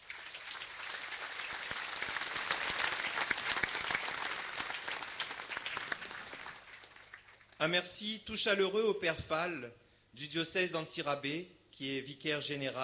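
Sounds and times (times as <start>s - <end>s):
audience applause: 0.0s - 7.6s
speech: 7.6s - 12.8s.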